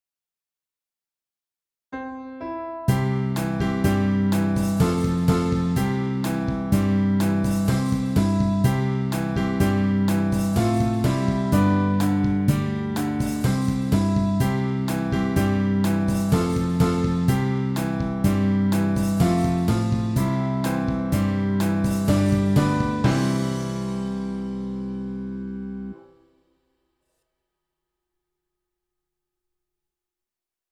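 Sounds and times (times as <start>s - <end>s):
keyboard: 2.0s - 26.1s.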